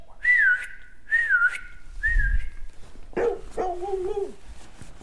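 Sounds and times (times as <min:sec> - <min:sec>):
loud whistles: 0:00.2 - 0:02.6
dog responding to whistles: 0:03.2 - 0:04.4.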